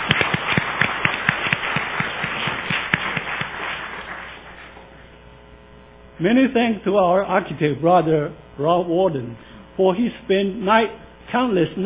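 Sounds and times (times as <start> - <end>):
audience applause: 0.0 - 4.8
speech: 6.2 - 11.8.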